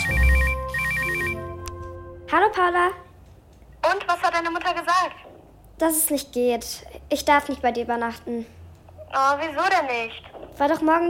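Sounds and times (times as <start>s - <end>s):
mobile phone ringing: 0.0s - 2.0s
speech: 2.3s - 3.1s, 3.9s - 11.0s.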